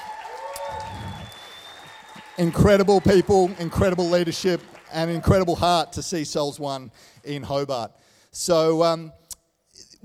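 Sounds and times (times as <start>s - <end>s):
audience applause: 0.0s - 6.0s
speech: 2.4s - 9.2s.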